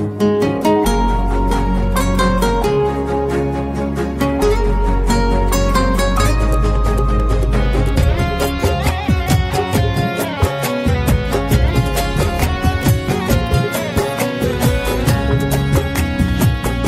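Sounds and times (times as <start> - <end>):
instrumental tone: 0.2 - 16.8.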